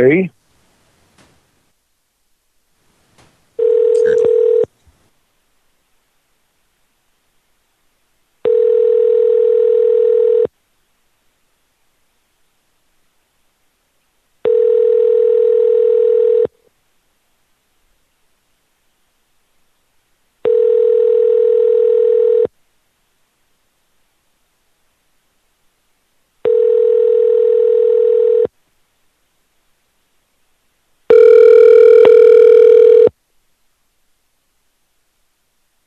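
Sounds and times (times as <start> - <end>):
telephone ringing tone while placing a call: 3.6 - 4.7, 8.4 - 10.5, 14.4 - 16.5, 20.4 - 22.5, 26.4 - 28.5, 31.1 - 33.1.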